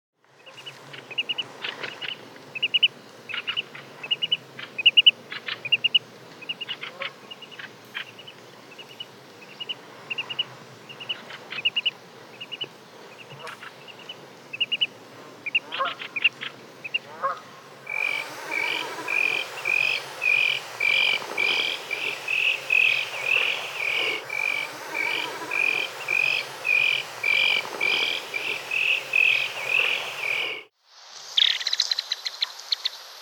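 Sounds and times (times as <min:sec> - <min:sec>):
birdsong of a snipe: 0:00.4 - 0:30.7.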